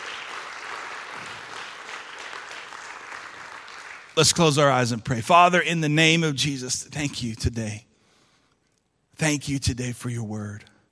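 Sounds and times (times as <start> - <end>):
audience applause: 0.0 - 4.2
speech: 4.2 - 7.9, 9.2 - 10.7.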